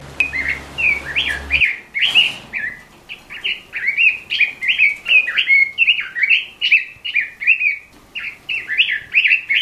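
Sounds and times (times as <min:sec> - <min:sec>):
low hum: 0:00.0 - 0:02.0
robin singing slurred whistled notes: 0:00.0 - 0:09.6.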